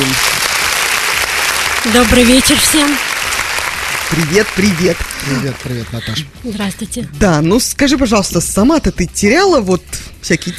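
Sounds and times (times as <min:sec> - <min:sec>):
audience applause: 0:00.0 - 0:06.2
speech: 0:01.8 - 0:03.1, 0:04.1 - 0:10.5.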